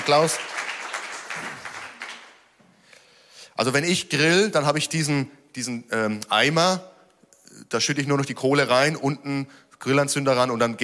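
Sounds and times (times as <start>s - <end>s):
audience applause: 0.0s - 2.5s
speech: 0.1s - 0.6s, 3.6s - 6.9s, 7.6s - 10.8s.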